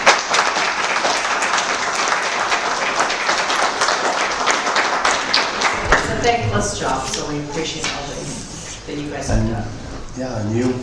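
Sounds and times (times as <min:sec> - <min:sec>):
group applauding: 0:00.0 - 0:07.1
speech: 0:06.2 - 0:08.1, 0:08.9 - 0:10.8.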